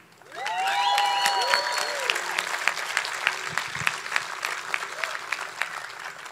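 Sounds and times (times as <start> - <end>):
applause: 0.0 - 6.3.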